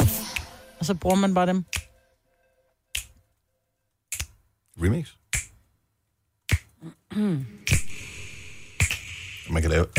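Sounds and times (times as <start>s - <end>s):
finger snap: 0.2s - 2.0s, 2.9s - 3.2s, 4.1s - 4.4s, 5.3s - 5.6s, 6.4s - 6.8s, 7.6s - 8.0s, 8.8s - 9.2s
speech: 0.8s - 1.8s, 4.8s - 5.2s, 7.2s - 7.6s, 9.5s - 9.9s.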